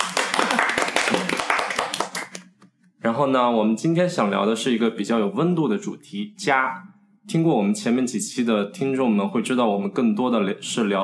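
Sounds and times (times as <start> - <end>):
small group clapping in welcome: 0.0 - 2.5
speech: 3.0 - 11.0.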